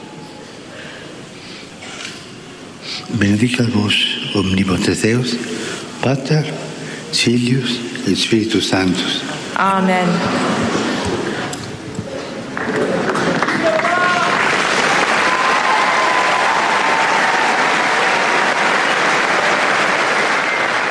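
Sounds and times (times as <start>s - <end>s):
speech: 3.1s - 10.8s
large crowd applause: 10.2s - 20.8s.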